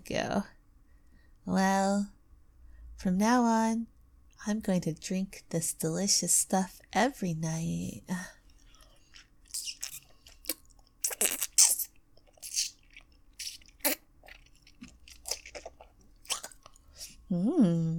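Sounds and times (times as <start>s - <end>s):
speech: 0.1s - 0.6s, 1.4s - 2.2s, 3.0s - 8.4s, 17.3s - 17.9s
wet sucking and slurping mouth sounds on a sweet treat: 8.5s - 17.2s.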